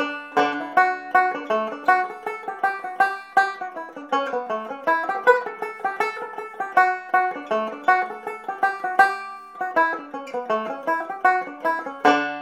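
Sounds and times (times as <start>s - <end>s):
banjo playing a reel: 0.0s - 12.3s.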